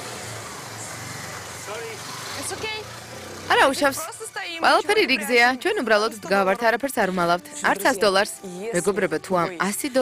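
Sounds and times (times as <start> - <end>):
motorcycle driving past on a crowded street in Mumbai: 0.0 - 7.4
speech: 1.7 - 10.0.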